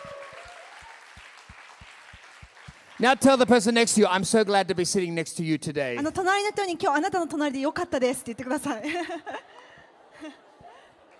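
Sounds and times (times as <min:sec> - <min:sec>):
audience applauding: 0:00.0 - 0:04.5
speech: 0:03.0 - 0:09.4
laughter: 0:08.7 - 0:11.1.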